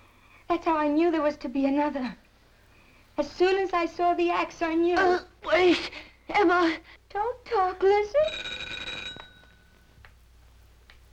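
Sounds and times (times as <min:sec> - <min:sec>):
speech: 0:00.5 - 0:02.2, 0:03.2 - 0:08.7
doorbell ringing in film scene: 0:08.2 - 0:09.9.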